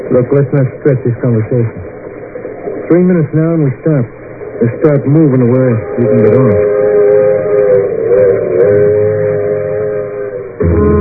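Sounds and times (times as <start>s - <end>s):
speech: 0.1s - 2.0s, 2.9s - 6.7s
train whistle blasts: 6.6s - 10.9s.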